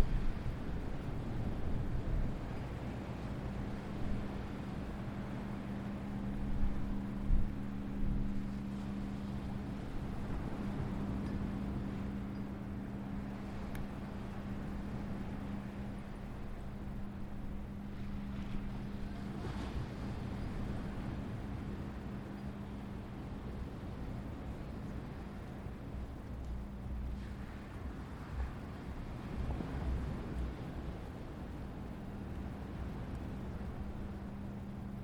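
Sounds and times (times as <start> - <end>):
low engine-like rumble at Asbury Park Beach: 0.0 - 35.0.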